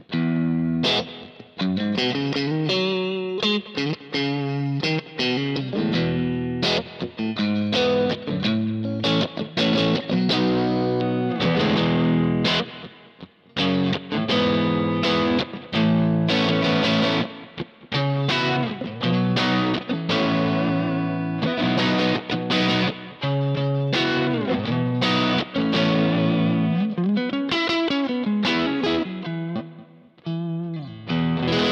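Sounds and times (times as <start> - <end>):
distorted electric guitar through a guitar speaker miked with a Shure 57: 0.0 - 31.7.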